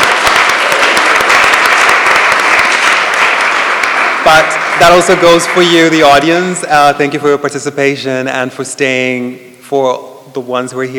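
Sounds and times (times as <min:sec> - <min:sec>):
audience applause: 0:00.0 - 0:06.3
speech: 0:04.3 - 0:10.9.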